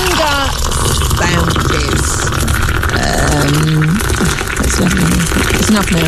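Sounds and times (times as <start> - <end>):
tea being poured into a cup: 0.0 - 6.0
speech: 5.8 - 6.0.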